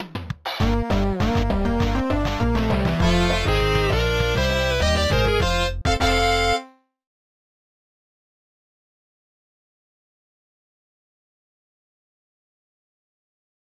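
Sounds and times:
forest outro music: 0:00.6 - 0:06.7.

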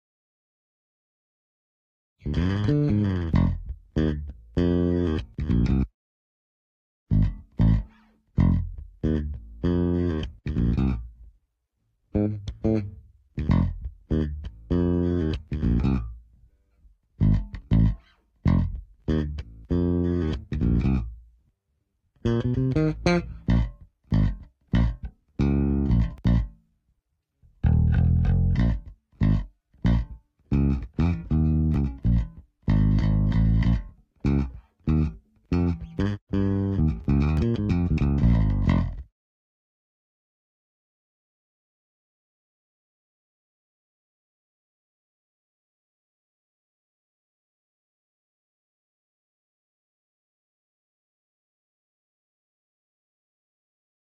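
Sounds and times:
bass tone: 0:02.2 - 0:05.9, 0:07.1 - 0:11.3, 0:12.2 - 0:16.2, 0:17.2 - 0:21.2, 0:22.2 - 0:26.6, 0:27.6 - 0:39.1.

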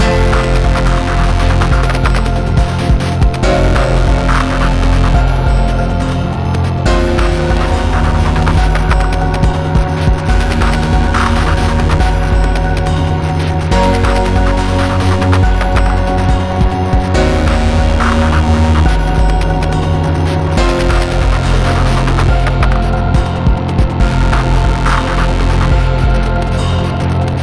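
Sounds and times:
glitch music: 0:00.0 - 0:27.4.

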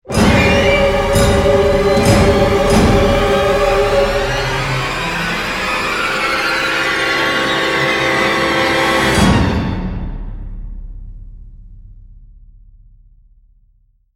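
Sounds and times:
security stinger music: 0:00.1 - 0:09.8.

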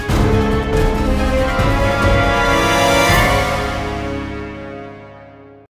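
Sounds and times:
combat lose game sound: 0:00.2 - 0:04.6.

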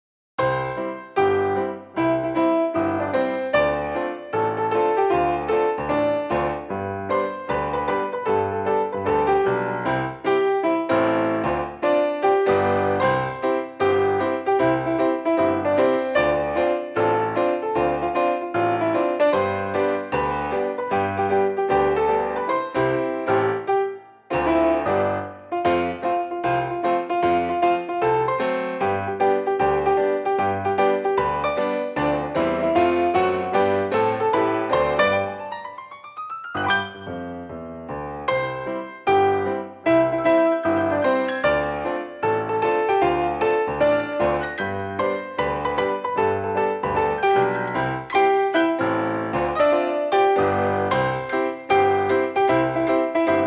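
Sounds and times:
piano mix of a song: 0:00.4 - 0:53.4.

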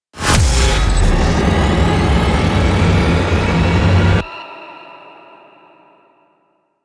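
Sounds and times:
combat music: 0:00.2 - 0:04.3.

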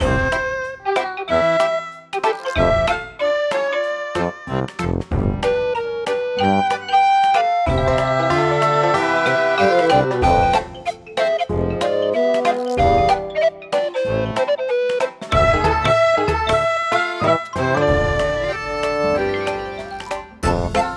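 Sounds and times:
beats: 0:00.0 - 0:20.9.

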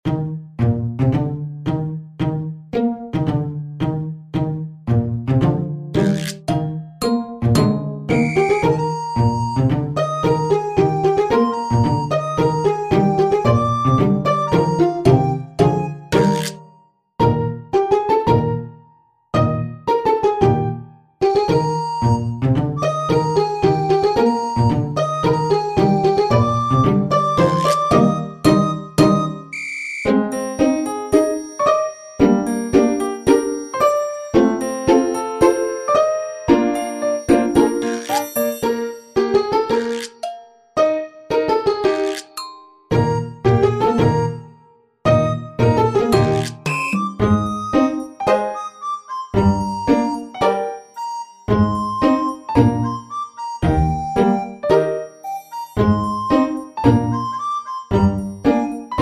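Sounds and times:
funny background music: 0:00.0 - 0:18.8, 0:19.4 - 0:59.0.

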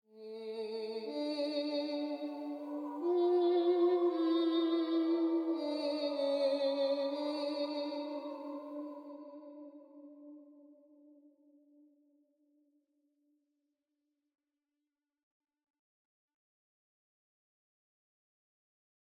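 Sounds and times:
person singing: 0:00.1 - 0:10.5.

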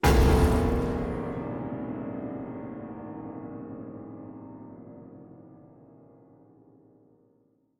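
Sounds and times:
piano shock sting: 0:00.0 - 0:04.8.

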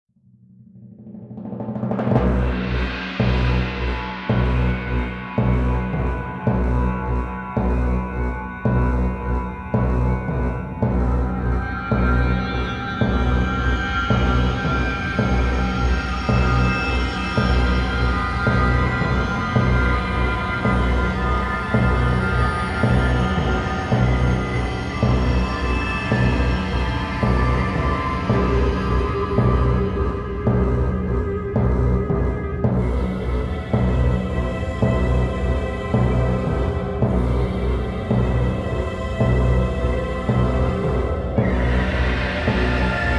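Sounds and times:
tense death march music: 0:01.6 - 0:43.1.

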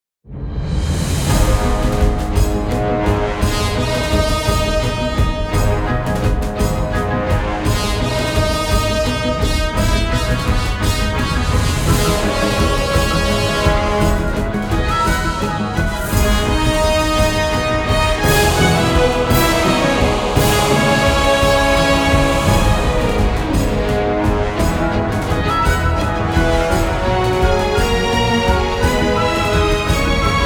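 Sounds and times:
electronic music: 0:01.3 - 0:30.4.

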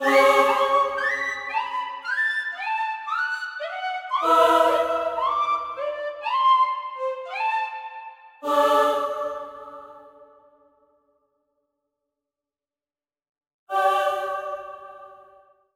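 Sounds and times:
choir singing in a cave: 0:00.0 - 0:10.5, 0:13.7 - 0:15.5.

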